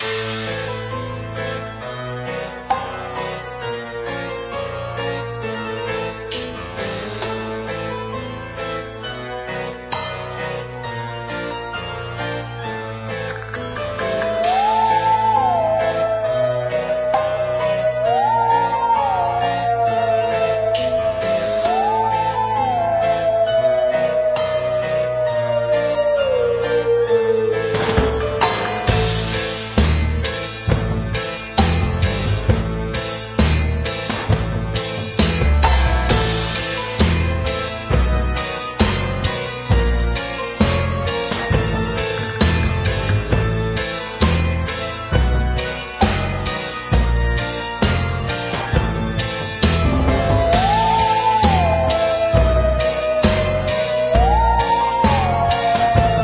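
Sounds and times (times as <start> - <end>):
game level music: 0.0 - 56.2.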